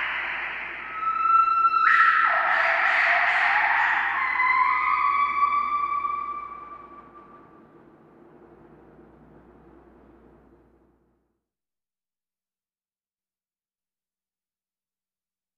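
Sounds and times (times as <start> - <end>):
gibbon song of rising wavering notes: 0.0 - 7.4.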